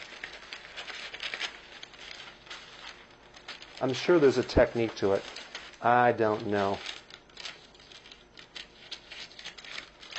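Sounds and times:
parchment paper being cut and worked into a pan: 0:00.0 - 0:10.1
speech: 0:03.8 - 0:06.9.

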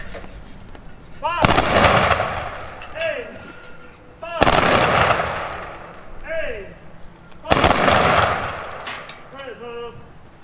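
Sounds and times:
firing squad rifle volleys: 0:01.4 - 0:03.0, 0:04.4 - 0:05.9, 0:07.5 - 0:09.2.

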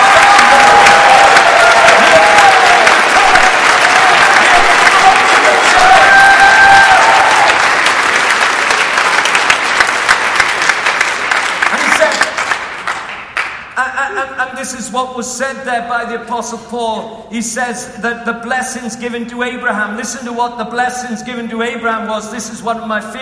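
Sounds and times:
audience clapping and applauding: 0:00.0 - 0:13.8
speech: 0:14.6 - 0:23.1.

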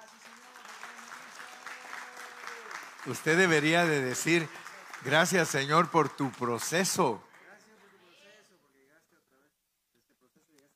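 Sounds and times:
audience applause: 0:00.0 - 0:07.7
speech: 0:03.0 - 0:07.3.

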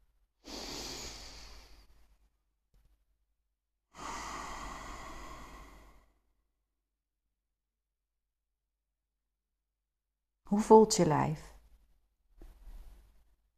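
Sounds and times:
slow deep breath in and out: 0:00.4 - 0:02.2, 0:03.9 - 0:06.5
speech: 0:10.5 - 0:11.5.

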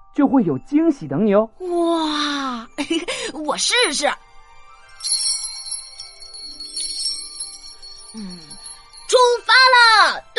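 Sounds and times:
speech: 0:00.2 - 0:02.2, 0:02.8 - 0:04.2, 0:08.2 - 0:08.4
camel bell being shaken: 0:05.0 - 0:09.2.

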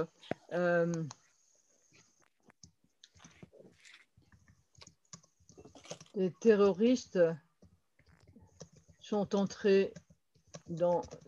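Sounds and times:
speech: 0:00.0 - 0:01.2, 0:06.2 - 0:07.4, 0:09.1 - 0:10.0, 0:10.7 - 0:11.2
typing on a computer keyboard: 0:04.4 - 0:06.2, 0:07.6 - 0:11.2.

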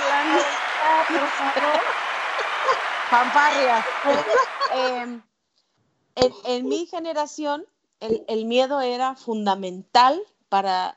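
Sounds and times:
applause sound effect: 0:00.0 - 0:05.0
laughter: 0:00.0 - 0:05.1
speech: 0:01.1 - 0:02.0, 0:03.1 - 0:05.3, 0:06.2 - 0:10.9.

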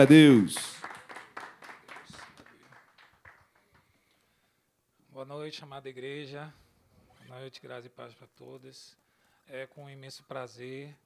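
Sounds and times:
speech: 0:00.0 - 0:00.7, 0:05.2 - 0:06.6, 0:07.3 - 0:11.0
applause: 0:00.0 - 0:04.0.

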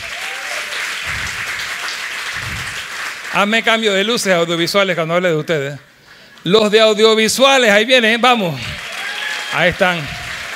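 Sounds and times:
applause: 0:00.0 - 0:04.8, 0:08.4 - 0:10.5
speech: 0:03.4 - 0:08.7, 0:09.5 - 0:10.2.

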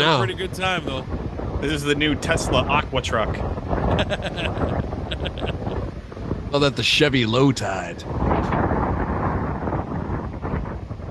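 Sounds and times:
laughter: 0:00.0 - 0:01.0, 0:03.8 - 0:05.8
speech: 0:00.0 - 0:05.7, 0:06.5 - 0:08.6
wind blowing: 0:00.0 - 0:11.0.

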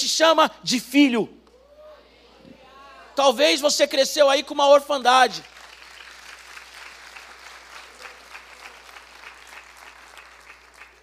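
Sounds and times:
speech: 0:00.1 - 0:01.4, 0:03.2 - 0:05.6
audience applause: 0:05.4 - 0:11.0.

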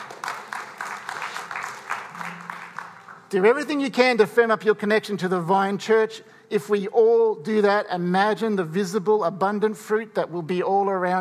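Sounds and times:
crowd clapping: 0:00.0 - 0:03.6
speech: 0:03.3 - 0:11.1.

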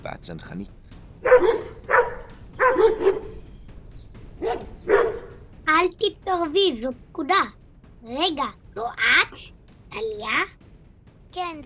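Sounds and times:
speech: 0:00.0 - 0:01.8, 0:02.8 - 0:03.3, 0:05.8 - 0:10.6, 0:11.3 - 0:11.6
dogs barking: 0:01.2 - 0:03.4, 0:04.4 - 0:05.4.

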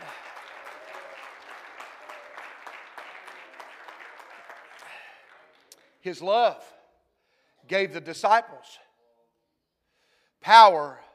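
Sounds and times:
audience clapping hands: 0:00.0 - 0:06.0
speech: 0:06.0 - 0:06.8, 0:07.7 - 0:08.9, 0:10.4 - 0:11.0.

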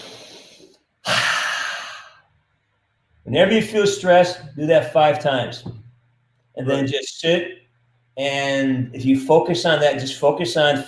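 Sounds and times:
hard breath in through the nose: 0:00.0 - 0:02.3
speech: 0:03.3 - 0:05.8, 0:06.6 - 0:07.6, 0:08.2 - 0:10.8.

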